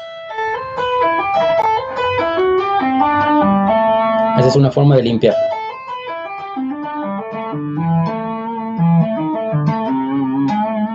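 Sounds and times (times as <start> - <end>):
palm-muted electric guitar with distortion: 0.0 - 10.9
speech: 4.4 - 5.6.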